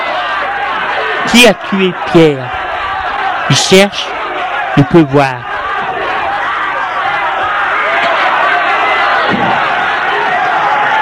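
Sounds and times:
crowd shouting: 0.0s - 11.0s
speech: 1.3s - 2.6s, 3.5s - 4.2s, 4.8s - 5.5s
dull thump: 9.3s - 9.6s.

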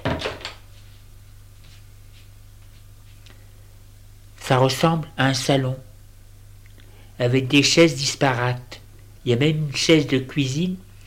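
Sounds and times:
door opening with wooden clunks and rattles: 0.0s - 0.6s
speech: 4.5s - 5.9s, 7.2s - 10.8s.

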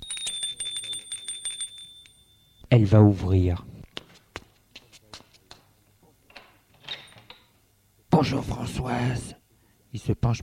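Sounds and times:
doorbell ringing at front door: 0.0s - 2.7s
speech: 2.7s - 3.7s, 8.2s - 10.4s.

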